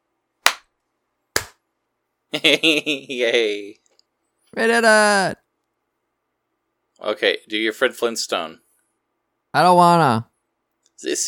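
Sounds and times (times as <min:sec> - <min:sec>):
hand clapping: 0:00.4 - 0:00.7, 0:01.4 - 0:01.6
speech: 0:02.3 - 0:03.8, 0:04.5 - 0:05.4, 0:07.0 - 0:08.6, 0:09.5 - 0:10.3, 0:11.0 - 0:11.2.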